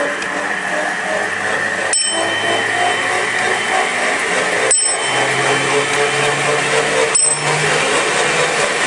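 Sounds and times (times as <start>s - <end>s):
hand-cranked machine whirring and grinding: 0.0s - 8.8s
small bell ringing: 1.9s - 6.1s, 7.1s - 7.9s.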